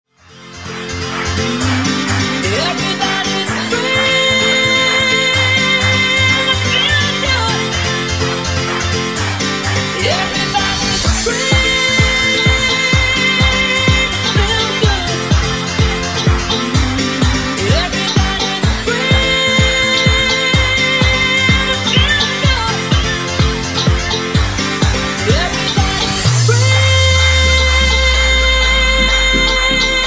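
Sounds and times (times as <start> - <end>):
funk vocal: 0.9 - 30.0.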